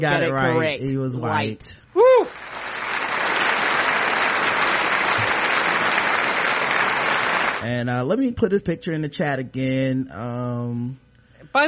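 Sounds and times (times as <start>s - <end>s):
speech: 0.0s - 1.8s, 7.6s - 11.6s
audience applause sound effect for a correct answer: 2.3s - 7.6s.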